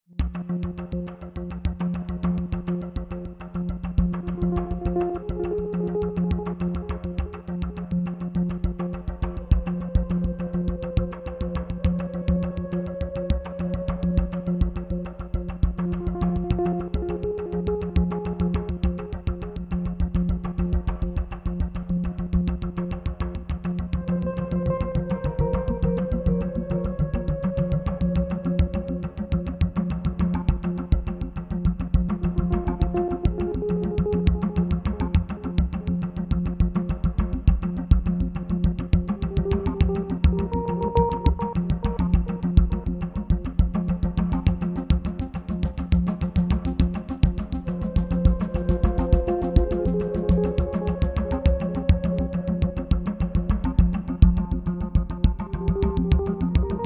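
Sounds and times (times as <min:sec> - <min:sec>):
slow tense clicky music bed: 0:00.2 - 0:56.8.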